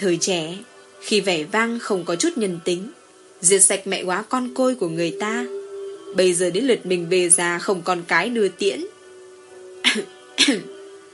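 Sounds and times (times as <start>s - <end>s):
speech: 0.0s - 8.9s, 9.9s - 10.7s
violent coughing fit: 9.8s - 10.8s.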